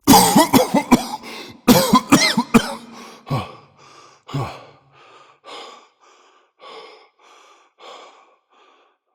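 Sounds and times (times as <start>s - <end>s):
person coughing: 0.0s - 3.7s.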